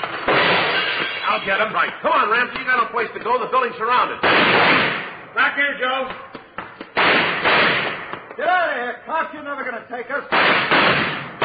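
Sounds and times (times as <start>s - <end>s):
gunfire in a radio drama shootout: 0.1s - 1.6s, 4.2s - 5.3s, 6.9s - 8.3s, 10.3s - 11.4s
speech: 1.4s - 6.3s, 8.4s - 11.2s.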